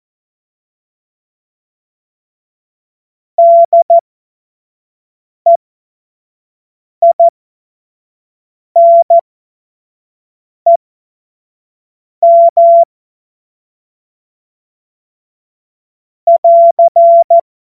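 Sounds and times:
Morse code course tones: 0:03.4 - 0:04.0, 0:08.8 - 0:09.2, 0:12.3 - 0:12.9, 0:16.3 - 0:17.4.

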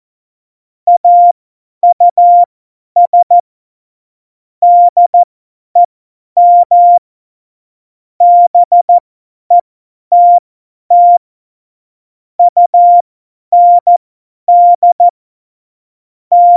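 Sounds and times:
CW Morse code beeps: 0:00.9 - 0:03.4, 0:04.6 - 0:05.2, 0:05.8 - 0:07.0, 0:08.2 - 0:11.2, 0:12.4 - 0:13.0, 0:13.6 - 0:15.1, 0:16.3 - 0:16.5.

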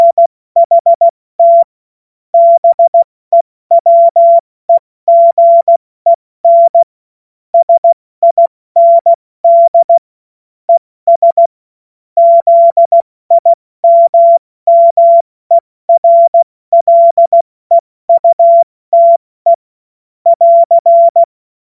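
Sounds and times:
CW Morse code beeps: 0:00.0 - 0:01.7, 0:02.4 - 0:04.4, 0:05.1 - 0:06.9, 0:07.6 - 0:10.0, 0:11.1 - 0:11.5, 0:12.2 - 0:19.6, 0:20.3 - 0:21.3.

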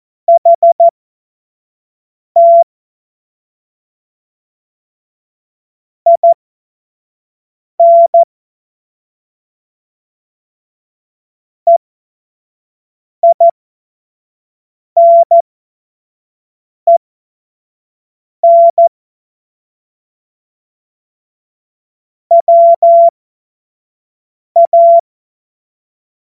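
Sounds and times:
Morse code course tones: 0:00.3 - 0:00.9, 0:02.4 - 0:02.6, 0:07.8 - 0:08.2, 0:13.2 - 0:13.5, 0:15.0 - 0:15.4, 0:18.4 - 0:18.9, 0:22.3 - 0:23.1, 0:24.6 - 0:25.0.

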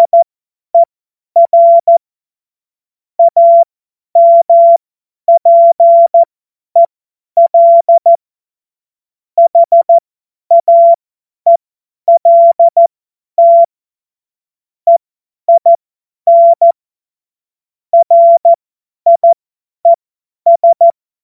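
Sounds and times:
CW Morse code beeps: 0:00.0 - 0:02.0, 0:03.2 - 0:08.2, 0:09.4 - 0:13.7, 0:14.9 - 0:16.8, 0:18.0 - 0:21.0.

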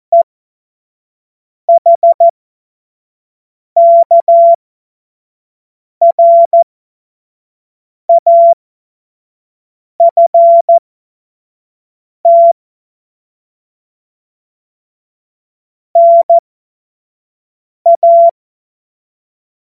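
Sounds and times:
CW Morse code beeps: 0:01.7 - 0:02.3, 0:03.8 - 0:04.6, 0:06.0 - 0:06.6, 0:08.1 - 0:08.6, 0:10.0 - 0:10.8, 0:12.3 - 0:12.6, 0:16.0 - 0:16.4, 0:17.9 - 0:18.4.

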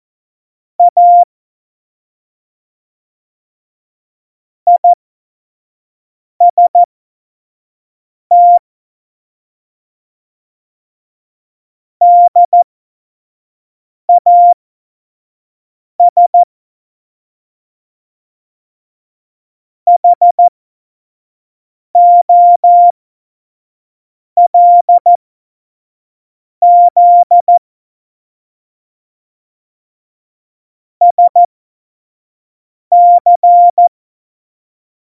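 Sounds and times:
CW Morse code beeps: 0:00.8 - 0:01.3, 0:04.7 - 0:05.0, 0:06.5 - 0:06.9, 0:08.3 - 0:08.6, 0:12.0 - 0:12.6, 0:14.1 - 0:14.6, 0:16.0 - 0:16.5, 0:19.9 - 0:20.5, 0:22.0 - 0:22.9, 0:24.4 - 0:25.2, 0:26.6 - 0:27.6, 0:31.0 - 0:31.5, 0:32.9 - 0:33.9.

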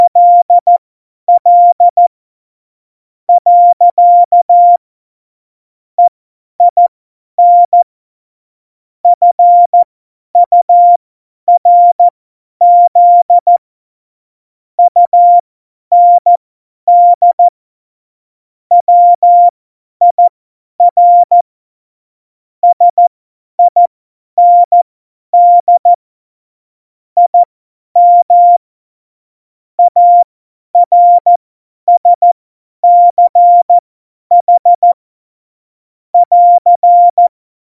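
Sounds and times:
CW Morse code beeps: 0:00.0 - 0:00.7, 0:01.3 - 0:02.0, 0:03.4 - 0:04.8, 0:07.4 - 0:07.8, 0:09.1 - 0:09.8, 0:10.4 - 0:13.6, 0:14.8 - 0:17.5, 0:18.7 - 0:19.5, 0:20.1 - 0:21.4, 0:22.6 - 0:24.8, 0:25.4 - 0:26.0, 0:27.2 - 0:28.6, 0:29.8 - 0:35.0, 0:36.2 - 0:37.3.

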